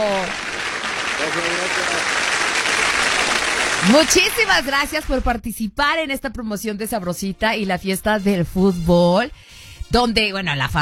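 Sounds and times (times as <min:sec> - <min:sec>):
applause: 0:00.0 - 0:05.3
speech: 0:03.8 - 0:10.8.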